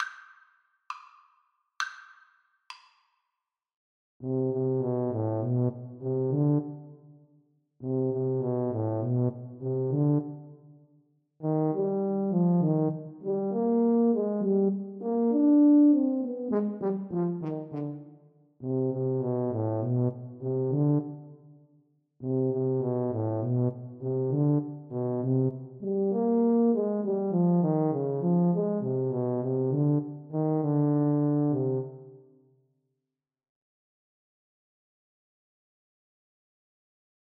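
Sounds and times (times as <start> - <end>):
tuba duet: 4.2 - 7.0, 7.8 - 10.6, 11.4 - 21.4, 22.2 - 32.2.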